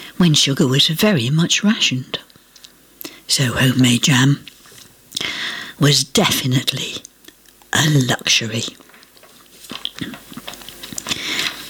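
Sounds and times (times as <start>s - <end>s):
speech: 0.2s - 2.3s, 3.3s - 4.5s, 5.8s - 7.1s, 7.8s - 8.8s
paper being thrown about: 8.7s - 11.6s.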